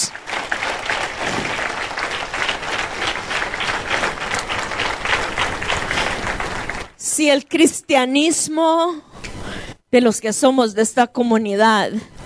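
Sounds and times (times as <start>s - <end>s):
audience applauding: 0.0s - 7.0s
speech: 7.2s - 9.1s, 9.9s - 12.2s.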